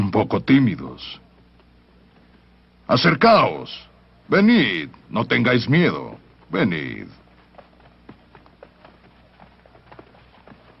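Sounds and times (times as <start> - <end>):
speech: 0.1 - 1.2, 2.9 - 7.2
Arabian horses approaching, hooves clopping: 6.2 - 10.7.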